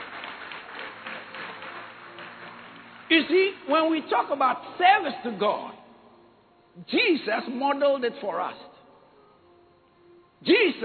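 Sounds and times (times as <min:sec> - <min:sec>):
church congregation clapping during a service: 0:00.0 - 0:03.9
speech: 0:03.1 - 0:05.8, 0:06.8 - 0:08.7, 0:10.4 - 0:10.8.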